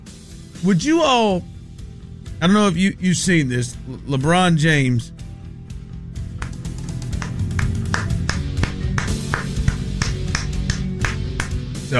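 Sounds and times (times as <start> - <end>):
speech: 0.6 - 1.5, 2.4 - 5.2
hand clapping: 6.2 - 11.8.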